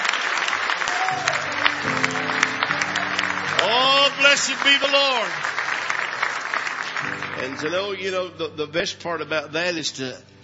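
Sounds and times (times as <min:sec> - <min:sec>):
audience applauding: 0:00.0 - 0:07.9
low sustained keyboard or organ-like notes: 0:01.2 - 0:05.7, 0:07.0 - 0:10.4
speech: 0:04.2 - 0:05.5, 0:07.4 - 0:10.3.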